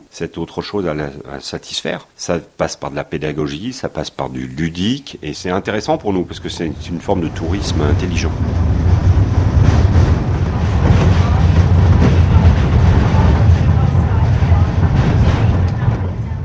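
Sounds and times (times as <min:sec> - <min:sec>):
speech: 0:00.1 - 0:09.1
rumbling inside a small mountain train heading toward the Mer de Glace: 0:05.7 - 0:16.4.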